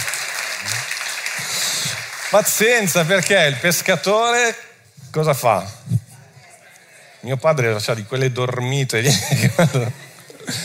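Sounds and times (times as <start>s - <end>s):
applause: 0.0s - 4.1s
speech: 2.3s - 5.8s, 7.2s - 10.6s
laughter: 9.0s - 10.6s.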